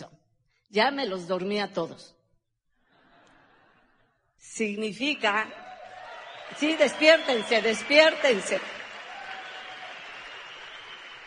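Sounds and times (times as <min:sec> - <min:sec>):
speech: 0:00.7 - 0:02.2, 0:04.4 - 0:05.6, 0:06.5 - 0:08.8
audience applauding: 0:05.5 - 0:11.2.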